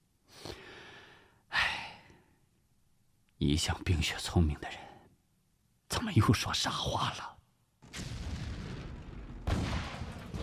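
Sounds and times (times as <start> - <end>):
speech: 3.4 - 4.9, 6.1 - 7.3
distant artillery fire: 7.8 - 10.4.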